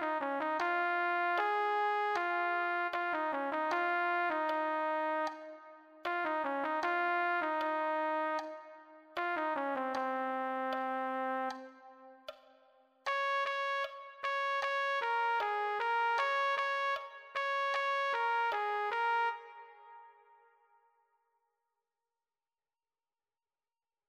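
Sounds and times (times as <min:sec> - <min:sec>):
trumpet: 0:00.0 - 0:11.8, 0:13.1 - 0:20.5.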